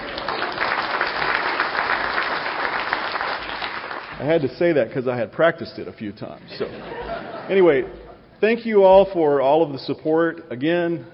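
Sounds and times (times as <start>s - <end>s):
audience applause: 0.0s - 4.2s
speech: 4.2s - 11.1s
laughter: 6.5s - 8.3s.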